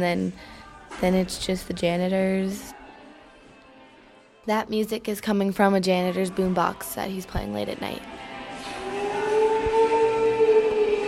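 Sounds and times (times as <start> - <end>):
speech: 0.0 - 2.8, 4.4 - 8.3
vacuum cleaner running at night: 8.6 - 11.0.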